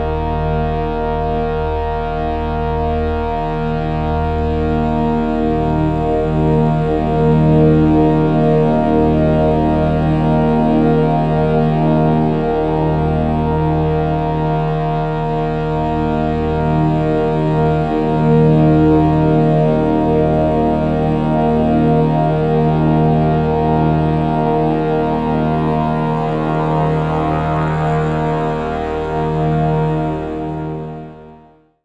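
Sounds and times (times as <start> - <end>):
shruti box drone: 0.0 - 31.6
overtone singing: 24.2 - 30.8.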